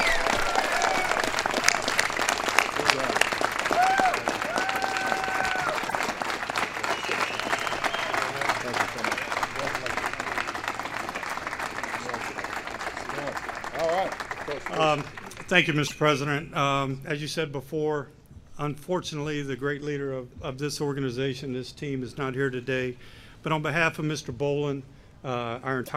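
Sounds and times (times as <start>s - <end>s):
cheers: 0.0s - 14.6s
audience applause: 0.0s - 15.8s
speech: 15.5s - 25.9s.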